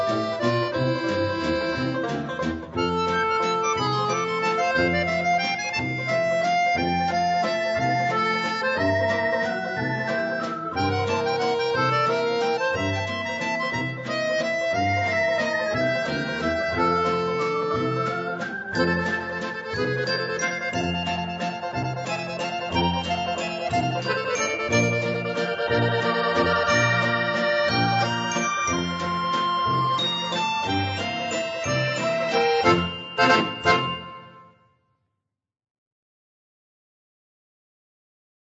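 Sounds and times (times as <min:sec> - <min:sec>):
accordion playing a waltz: 0:00.0 - 0:34.4.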